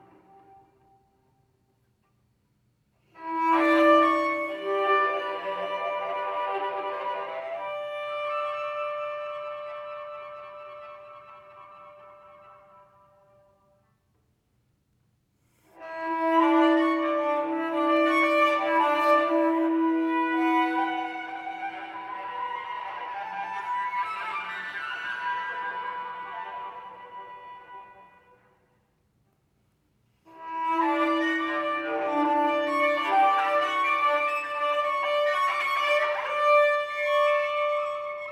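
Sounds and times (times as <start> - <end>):
soft, light solo cello: 3.2 - 13.0, 15.8 - 28.4, 30.3 - 38.3.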